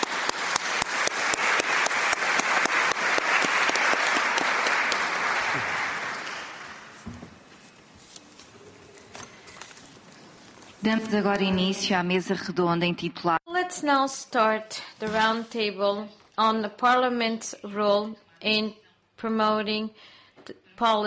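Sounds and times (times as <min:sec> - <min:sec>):
seminar audience applauding: 0:00.0 - 0:07.0
speech: 0:10.9 - 0:21.0.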